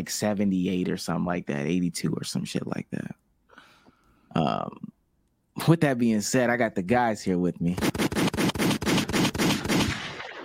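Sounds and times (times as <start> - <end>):
speech: 0.0 - 3.2, 4.4 - 4.9, 5.6 - 8.0
gunfire sound effect: 7.8 - 10.4.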